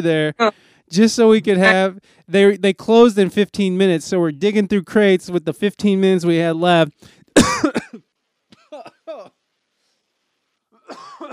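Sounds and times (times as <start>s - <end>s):
speech: 0.0s - 7.7s
person coughing and choking on saliva: 7.4s - 8.0s, 8.6s - 9.3s, 10.9s - 11.3s.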